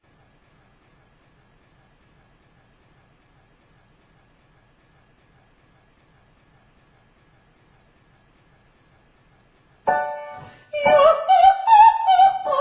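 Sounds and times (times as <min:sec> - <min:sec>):
ascending very high triads: 0:09.9 - 0:12.5.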